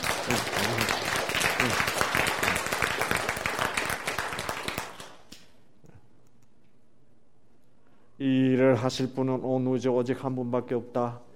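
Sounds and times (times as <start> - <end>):
audience applause: 0.0 - 5.3
speech: 8.8 - 11.3.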